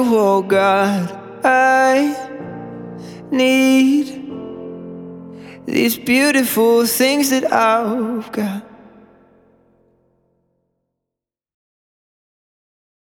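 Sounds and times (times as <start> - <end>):
acoustic music: 0.0 - 9.4.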